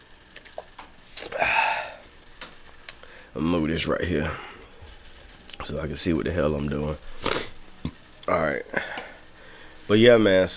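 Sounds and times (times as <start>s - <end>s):
speech: 3.4s - 4.5s, 5.6s - 7.2s, 8.3s - 9.0s, 9.9s - 10.5s
slurping sip from a can of seltzer: 7.2s - 7.5s.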